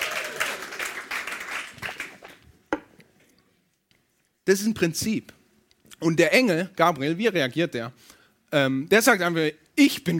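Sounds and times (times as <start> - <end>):
audience applause: 0.0 - 2.4
speech: 4.5 - 5.4, 6.0 - 10.1.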